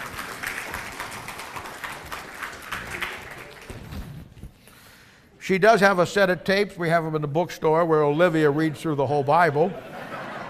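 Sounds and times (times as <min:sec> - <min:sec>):
audience applause: 0:00.0 - 0:04.0
speech: 0:05.5 - 0:09.9
laughter: 0:09.2 - 0:10.4.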